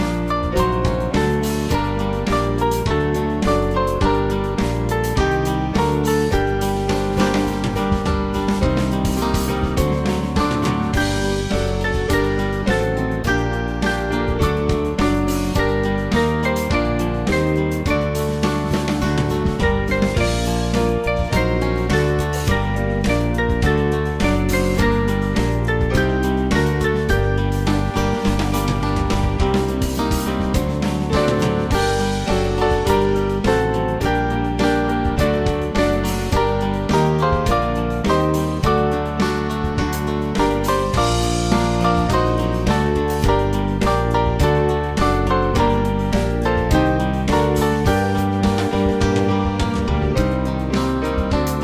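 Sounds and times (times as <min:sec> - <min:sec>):
band playing: 0:00.1 - 0:51.6.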